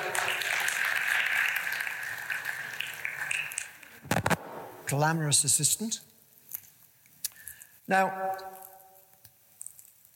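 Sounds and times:
crowd applauding: 0:00.0 - 0:04.2
speech: 0:04.9 - 0:06.1, 0:07.9 - 0:08.4.

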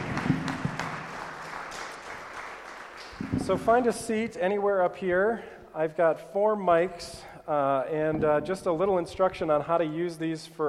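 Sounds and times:
audience applause: 0:00.0 - 0:03.7
speech: 0:03.4 - 0:10.6.

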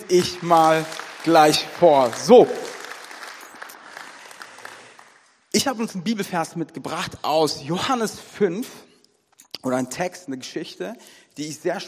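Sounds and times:
audience applause: 0:00.0 - 0:05.4
speech: 0:00.1 - 0:02.6, 0:05.6 - 0:08.9, 0:09.6 - 0:11.8.

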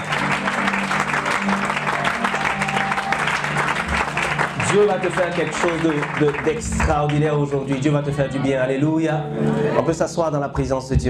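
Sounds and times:
church congregation clapping during worship: 0:00.0 - 0:08.1
speech: 0:04.7 - 0:11.0.

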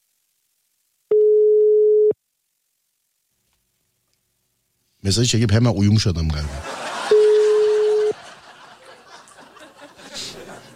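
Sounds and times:
telephone ringback tone during an unanswered call to a listener: 0:01.1 - 0:02.2, 0:07.1 - 0:08.2
speech: 0:05.1 - 0:06.8
laughter: 0:06.5 - 0:10.7.

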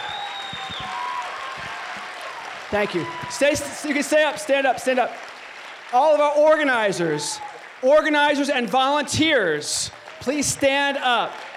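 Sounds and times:
audience round of applause: 0:00.0 - 0:11.5
speech: 0:02.7 - 0:05.3, 0:05.9 - 0:11.5.

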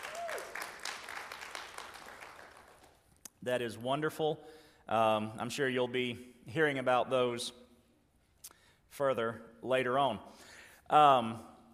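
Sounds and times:
audience clapping: 0:00.0 - 0:03.2
speech: 0:03.4 - 0:07.6, 0:09.0 - 0:11.5.

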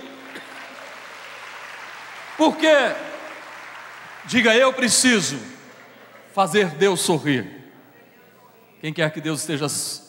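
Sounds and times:
audience applauding: 0:00.0 - 0:06.8
speech: 0:02.4 - 0:03.1, 0:04.2 - 0:05.6, 0:06.4 - 0:07.6, 0:08.8 - 0:10.0.

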